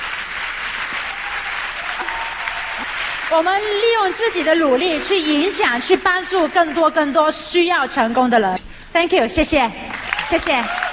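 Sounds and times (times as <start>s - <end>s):
audience applause: 0.0s - 7.3s, 9.8s - 10.9s
speech: 3.3s - 10.8s.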